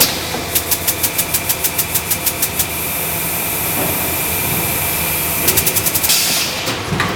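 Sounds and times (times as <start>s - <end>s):
hydraulic mechanism: 0.0s - 7.0s.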